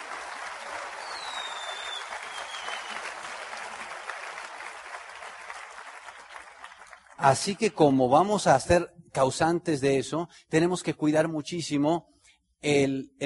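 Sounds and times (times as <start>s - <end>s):
audience applause: 0.0s - 7.5s
speech: 7.2s - 13.2s.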